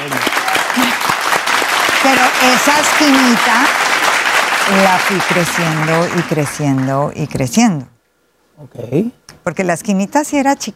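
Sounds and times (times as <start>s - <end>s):
audience applause: 0.0s - 7.1s
speech: 2.0s - 3.9s, 4.7s - 7.9s, 8.6s - 10.7s.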